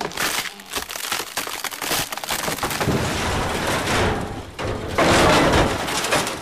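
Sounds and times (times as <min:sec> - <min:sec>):
tree falling with a terrible crack: 0:00.0 - 0:06.4
car metal bending: 0:02.5 - 0:06.4.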